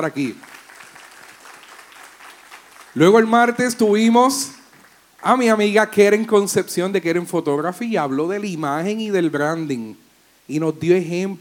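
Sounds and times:
speech: 0:00.0 - 0:00.5, 0:02.9 - 0:04.6, 0:05.2 - 0:11.4
audience applause: 0:00.4 - 0:03.4.

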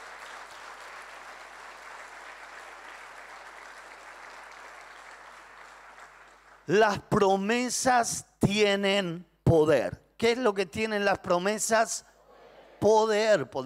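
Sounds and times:
audience applauding: 0:00.0 - 0:06.7
speech: 0:06.7 - 0:12.1, 0:12.8 - 0:13.6.

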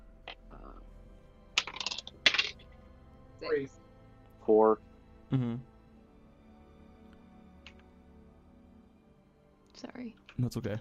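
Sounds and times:
six-sided die rattling across a hard surface: 0:01.6 - 0:02.6
speech: 0:03.4 - 0:03.8, 0:04.5 - 0:05.7, 0:09.8 - 0:10.7.

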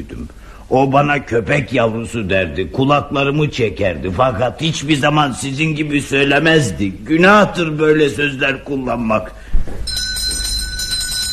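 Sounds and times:
speech: 0:00.0 - 0:09.6
doorbell ringing: 0:09.8 - 0:11.3.

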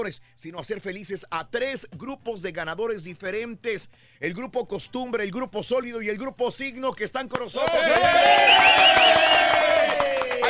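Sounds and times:
speech: 0:00.0 - 0:09.6
group shouting and cheering: 0:07.6 - 0:10.4.

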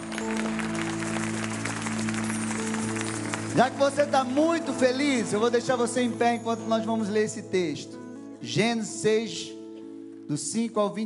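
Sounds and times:
audience applauding: 0:00.0 - 0:06.4
speech: 0:03.6 - 0:09.6, 0:10.3 - 0:11.0.

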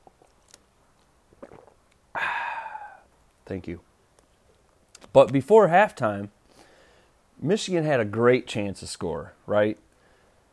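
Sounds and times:
person drinking a sip of water: 0:00.0 - 0:03.2
speech: 0:03.5 - 0:03.9, 0:05.2 - 0:06.4, 0:07.4 - 0:09.8.

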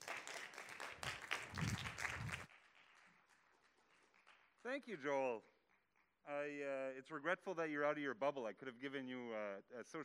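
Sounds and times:
round of applause: 0:00.0 - 0:06.2
speech: 0:04.6 - 0:05.5, 0:06.2 - 0:10.0.

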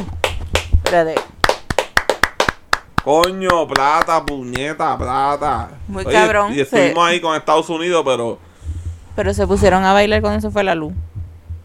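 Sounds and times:
few people clapping in sharp steady claps: 0:00.0 - 0:04.8
speech: 0:00.9 - 0:01.3, 0:03.0 - 0:08.4, 0:09.2 - 0:11.1.

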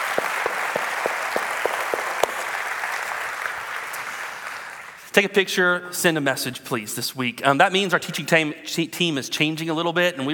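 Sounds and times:
audience applause: 0:00.0 - 0:05.0
speech: 0:05.2 - 0:10.3.

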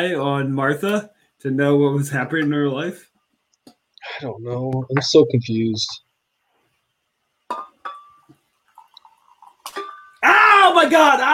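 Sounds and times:
speech: 0:00.0 - 0:03.1, 0:04.0 - 0:06.0, 0:10.8 - 0:11.3
mug clinks: 0:07.5 - 0:10.2
tea poured from a thermos into a mug: 0:08.7 - 0:10.1.

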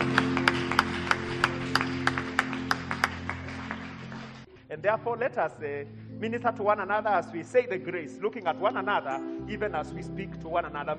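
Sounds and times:
audience clapping: 0:00.0 - 0:04.5
speech: 0:04.8 - 0:10.9.

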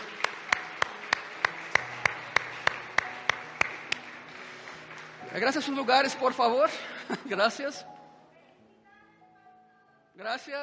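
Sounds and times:
audience clapping in unison: 0:00.0 - 0:06.5
speech: 0:05.4 - 0:08.0, 0:10.2 - 0:10.6
laughter: 0:06.7 - 0:07.6.

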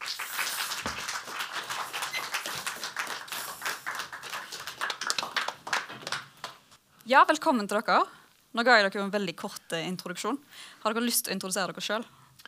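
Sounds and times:
audience applause for book talk guests: 0:00.0 - 0:06.6
speech: 0:07.1 - 0:12.2.

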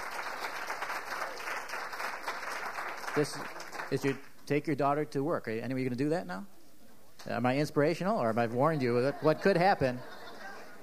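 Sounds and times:
audience applause: 0:00.0 - 0:04.3
speech: 0:03.2 - 0:06.5, 0:07.2 - 0:10.2
laughter: 0:08.5 - 0:10.8.

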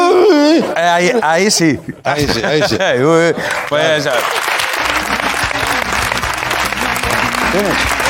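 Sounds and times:
laughter: 0:00.2 - 0:08.0
speech: 0:01.0 - 0:04.5, 0:07.6 - 0:08.0
crowd clapping: 0:03.4 - 0:08.0.

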